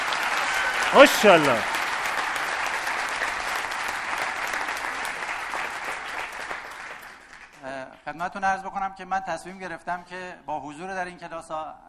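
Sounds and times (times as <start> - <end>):
audience applause: 0.0 - 7.6
speech: 0.9 - 1.7, 8.1 - 11.8.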